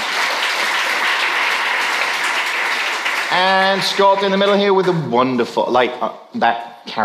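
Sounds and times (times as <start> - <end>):
audience applause: 0.0 - 5.4
speech: 3.4 - 7.0.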